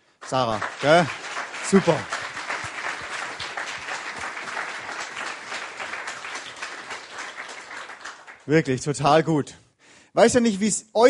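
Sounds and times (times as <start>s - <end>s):
audience applause: 0.2s - 8.8s
speech: 0.3s - 2.2s, 8.5s - 11.0s.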